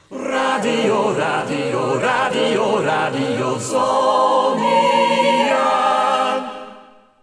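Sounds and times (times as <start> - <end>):
a cappella choir station call: 0.0 - 7.2.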